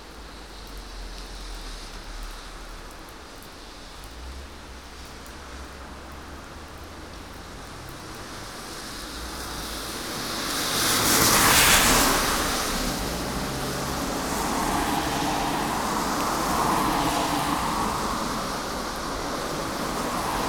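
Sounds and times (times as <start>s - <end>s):
street traffic on a rainy day in Coquitlam BC Canada: 0.0s - 20.4s.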